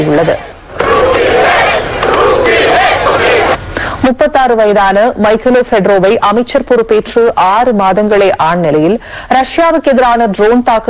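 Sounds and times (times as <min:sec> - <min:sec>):
crowd of protesters chanting: 0:00.0 - 0:03.6
speech: 0:00.1 - 0:00.5, 0:04.1 - 0:10.8.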